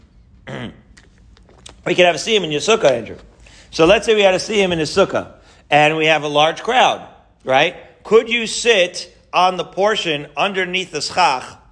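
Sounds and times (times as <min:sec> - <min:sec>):
rough raspy throat clearing: 0:00.4 - 0:01.0
speech: 0:01.8 - 0:11.6.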